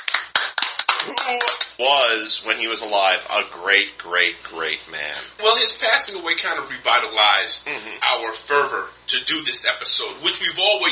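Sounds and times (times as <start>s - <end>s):
applause: 0.0s - 1.8s
speech: 1.3s - 10.9s.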